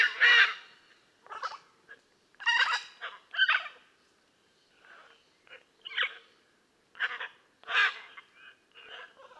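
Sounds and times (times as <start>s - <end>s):
blue-and-yellow macaw squawking: 0.0s - 1.6s, 2.4s - 3.8s, 6.9s - 9.3s.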